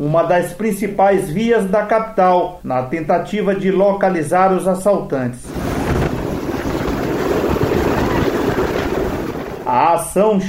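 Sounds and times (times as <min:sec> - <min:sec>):
speech: 0:00.0 - 0:05.6, 0:10.0 - 0:10.4
helicopter flying overhead: 0:05.5 - 0:09.7.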